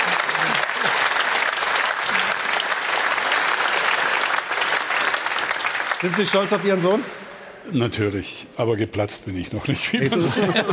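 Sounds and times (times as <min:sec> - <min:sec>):
laughter: 0:00.0 - 0:01.1, 0:10.0 - 0:10.7
audience applause: 0:00.0 - 0:07.2
speech: 0:06.0 - 0:10.7.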